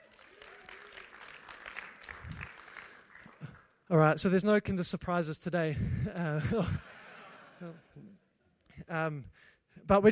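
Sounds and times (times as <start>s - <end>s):
audience clapping steadily: 0.0s - 3.8s
speech: 3.9s - 6.9s, 8.9s - 10.1s
laughter: 6.3s - 8.2s.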